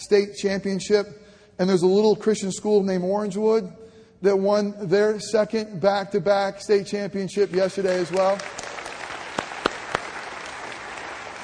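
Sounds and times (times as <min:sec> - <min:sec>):
speech: 0:00.0 - 0:08.7
audience clapping: 0:07.4 - 0:11.4.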